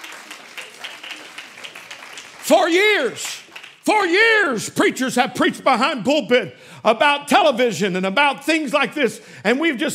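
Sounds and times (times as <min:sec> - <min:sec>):
audience clapping hands: 0:00.0 - 0:04.3
speech: 0:02.5 - 0:09.9.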